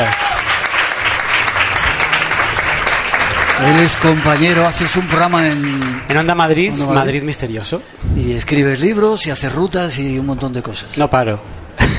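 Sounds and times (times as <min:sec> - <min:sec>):
radio studio audience applauding an arriving guest: 0:00.0 - 0:06.6
speech: 0:03.6 - 0:11.6.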